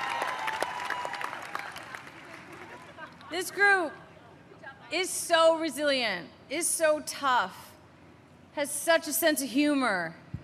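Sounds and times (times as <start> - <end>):
audience applause: 0.0 - 3.1
speech: 3.3 - 4.0, 4.9 - 7.7, 8.6 - 10.2.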